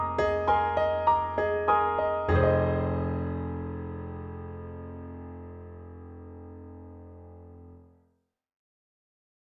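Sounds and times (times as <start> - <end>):
synthesizer grand piano acoustic tone: 0.0 - 8.0.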